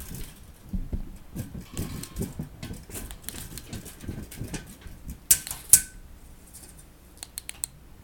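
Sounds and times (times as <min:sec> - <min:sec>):
object noises: 0:00.2 - 0:05.7.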